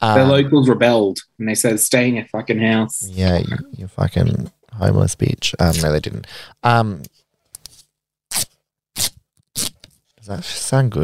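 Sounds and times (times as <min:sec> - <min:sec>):
speech: 0:00.0 - 0:07.2, 0:10.3 - 0:11.0
scotch tape being pulled off a roll: 0:08.3 - 0:10.0.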